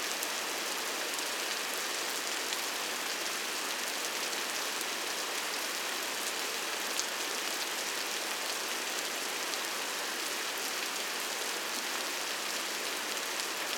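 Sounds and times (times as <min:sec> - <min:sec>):
rain: 0:00.0 - 0:13.7.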